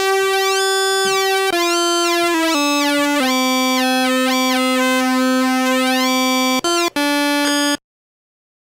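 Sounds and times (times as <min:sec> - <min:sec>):
Moog Realistic Concertmate MG-1 synthesizer: 0:00.0 - 0:07.8.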